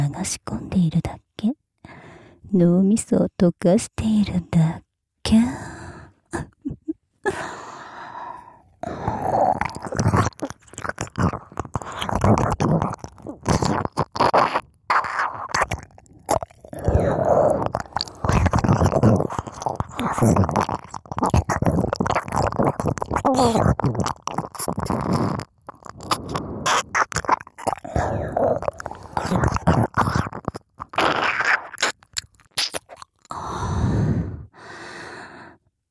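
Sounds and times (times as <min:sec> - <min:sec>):
speech: 0:00.2 - 0:01.2, 0:02.5 - 0:05.4
ASMR ear licking wet mouth sounds: 0:08.8 - 0:34.3.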